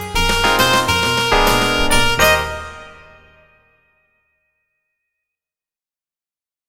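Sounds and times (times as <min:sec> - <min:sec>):
old mobile phone ringtone: 0:00.2 - 0:02.9.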